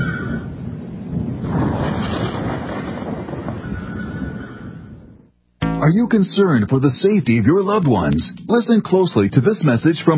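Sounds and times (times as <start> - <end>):
storm wind: 0.0 - 5.3
speech: 5.9 - 10.1.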